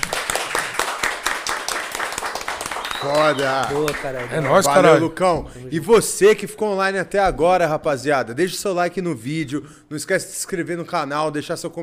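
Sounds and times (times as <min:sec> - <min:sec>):
people clapping: 0:00.0 - 0:05.4
speech: 0:03.0 - 0:11.8.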